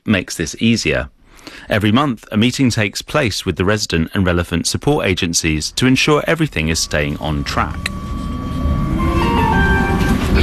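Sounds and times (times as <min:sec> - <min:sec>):
speech: 0:00.1 - 0:08.1
tram interior rumble while moving: 0:02.8 - 0:10.4
tram electric motor whine: 0:06.6 - 0:10.2.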